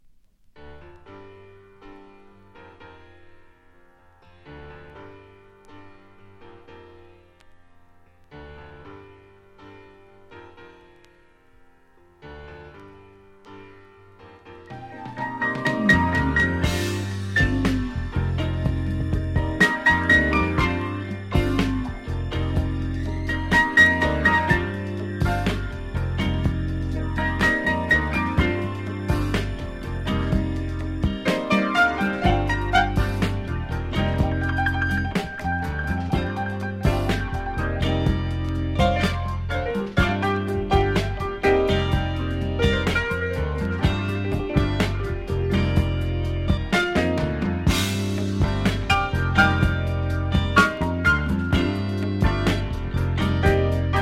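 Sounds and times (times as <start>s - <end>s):
slowed esoteric funk music: 12.6s - 54.0s.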